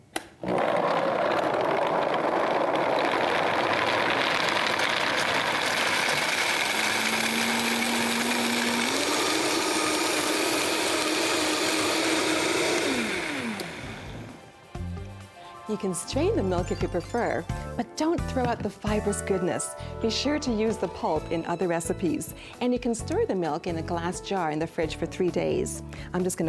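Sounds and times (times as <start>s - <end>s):
Vitamix blender motor blending homemade milk: 0.1s - 14.4s
speech: 15.8s - 26.4s.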